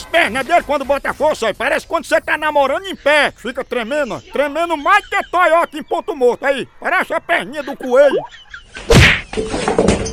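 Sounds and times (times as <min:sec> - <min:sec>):
speech: 0:00.1 - 0:10.1
wooden chair cracking and collapsing: 0:08.9 - 0:10.1.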